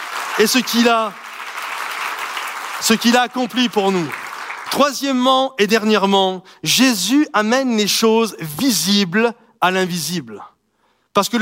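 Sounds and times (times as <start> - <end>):
congregation applauding during a church service: 0.0 - 5.3
speech: 0.4 - 1.2, 2.8 - 10.6, 11.2 - 11.3.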